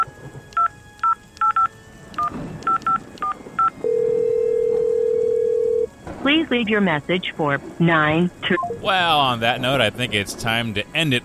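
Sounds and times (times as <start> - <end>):
touch-tone beeps of a phone number being dialed: 0.0 - 5.9, 8.4 - 8.8
speech: 6.3 - 11.2.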